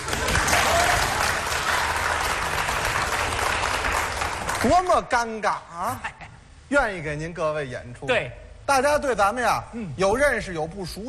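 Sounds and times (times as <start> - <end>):
audience applause: 0.0 - 4.9
speech: 4.6 - 11.0.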